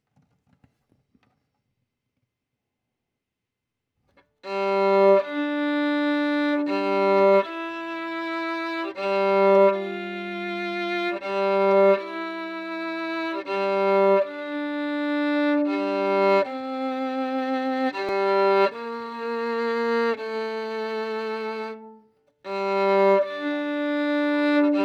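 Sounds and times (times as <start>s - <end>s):
violin: 4.4s - 24.8s.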